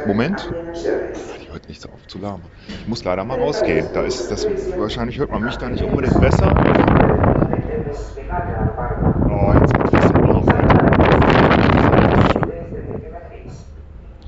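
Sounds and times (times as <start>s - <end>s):
speech: 0.0s - 9.7s
strong wind buffeting microphone on a ship's deck: 2.8s - 14.2s.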